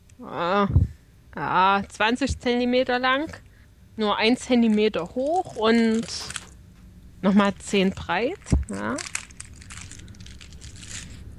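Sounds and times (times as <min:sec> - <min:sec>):
speech: 0:00.2 - 0:06.4, 0:07.2 - 0:09.1
crinkly plastic wrapping torn on a package of egg liqueur chocolates: 0:04.6 - 0:06.6, 0:07.6 - 0:11.3.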